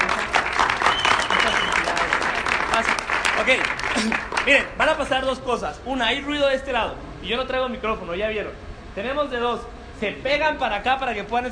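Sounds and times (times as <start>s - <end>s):
crowd applauding: 0.0s - 4.7s
speech: 3.5s - 11.4s.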